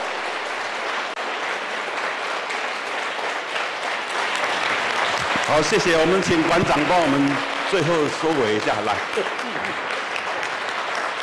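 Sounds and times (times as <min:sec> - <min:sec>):
applause: 0:00.0 - 0:11.2
speech: 0:05.5 - 0:09.9.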